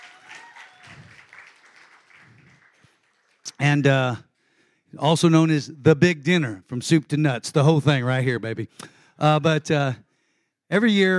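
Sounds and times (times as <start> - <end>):
audience applause welcoming a speaker at a Veterans Day dinner: 0.0 - 3.5
speech: 3.6 - 4.3, 4.9 - 10.0, 10.7 - 11.1.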